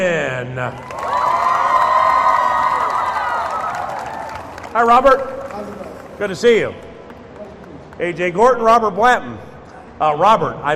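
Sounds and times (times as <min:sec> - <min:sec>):
speech: 0:00.0 - 0:01.2, 0:04.7 - 0:06.8, 0:08.0 - 0:10.7
crowd cheering and whooping: 0:00.8 - 0:04.7
crowd applause: 0:00.8 - 0:08.0.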